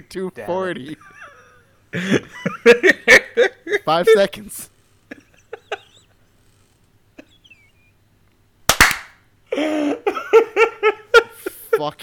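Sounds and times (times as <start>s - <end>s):
speech: 0.0s - 1.3s, 1.9s - 4.7s, 11.8s - 12.0s
voices with loud laugh-like bursts: 0.9s - 4.3s, 5.0s - 6.4s, 7.1s - 8.0s, 9.5s - 12.0s
single hand clap: 8.7s - 9.2s.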